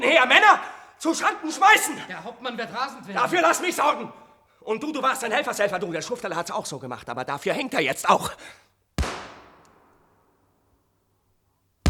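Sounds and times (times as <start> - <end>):
speech: 0.0 - 8.8
gunshots fired by the robber captain in a radio play: 9.0 - 10.2.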